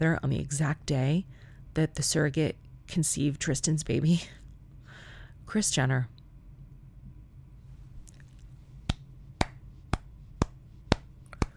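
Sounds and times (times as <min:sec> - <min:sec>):
speech: 0:00.0 - 0:04.4, 0:05.5 - 0:06.2
quiet hand clapping: 0:08.9 - 0:11.5.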